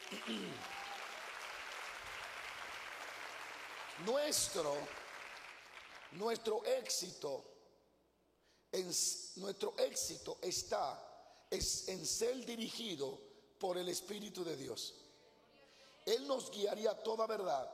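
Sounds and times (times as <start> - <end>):
crowd audience applauding: 0.0 - 6.2
speech: 0.2 - 0.8, 4.0 - 5.0, 6.1 - 7.5, 8.7 - 15.0, 16.0 - 17.7.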